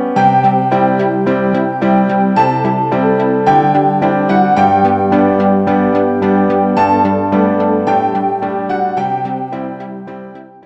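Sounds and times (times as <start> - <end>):
sad ringtone melody: 0.2 - 10.5.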